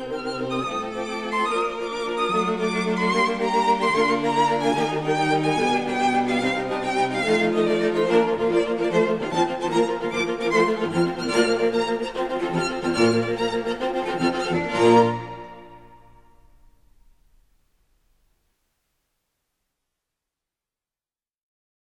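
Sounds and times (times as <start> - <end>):
string quartet of two violins, viola and cello playing an allegro fugue: 0.0 - 16.4.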